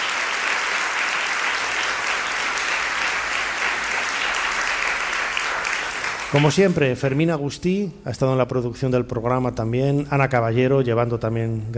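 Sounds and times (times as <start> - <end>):
audience applause: 0.0 - 7.2
speech: 6.3 - 11.7.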